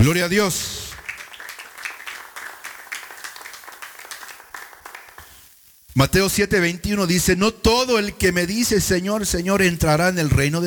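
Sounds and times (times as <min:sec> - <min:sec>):
speech: 0:00.0 - 0:00.8, 0:06.0 - 0:10.6
people clapping: 0:00.0 - 0:05.6.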